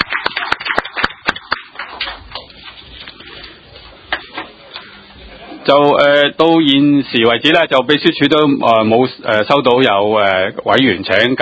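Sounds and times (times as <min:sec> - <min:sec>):
small group applause: 0:00.0 - 0:02.5
speech: 0:05.7 - 0:11.3.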